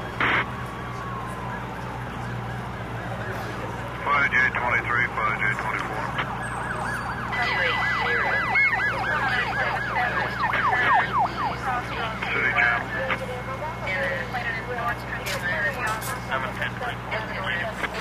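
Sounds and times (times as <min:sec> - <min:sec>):
police siren: 0:00.0 - 0:17.9.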